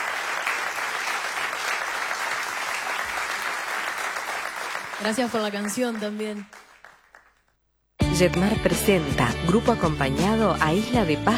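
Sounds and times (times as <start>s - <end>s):
audience applause: 0.0s - 7.3s
speech: 5.0s - 6.6s, 8.2s - 11.3s.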